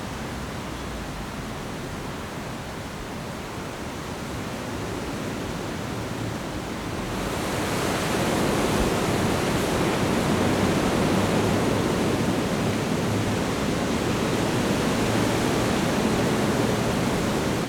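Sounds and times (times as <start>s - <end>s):
strong wind in trees in a park: 0.0s - 17.6s.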